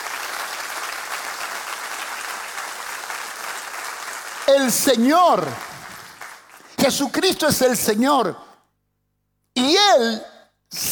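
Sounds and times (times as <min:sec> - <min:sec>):
audience applauding: 0:00.0 - 0:06.8
speech: 0:04.5 - 0:05.7, 0:06.8 - 0:08.4, 0:09.9 - 0:10.9.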